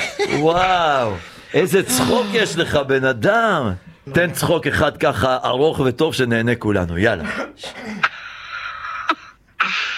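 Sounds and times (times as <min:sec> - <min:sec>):
person coughing: 0:00.0 - 0:00.5, 0:07.3 - 0:08.2
speech: 0:00.2 - 0:08.1.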